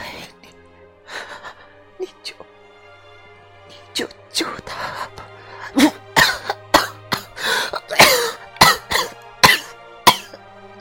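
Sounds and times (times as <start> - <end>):
speech: 4.0 - 5.0
violent coughing: 5.7 - 10.4.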